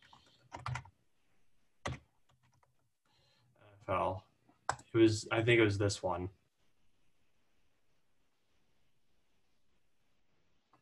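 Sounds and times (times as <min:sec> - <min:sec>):
typing on a computer keyboard: 0:00.0 - 0:01.0, 0:01.8 - 0:02.8
speech: 0:03.9 - 0:04.3, 0:04.9 - 0:06.4.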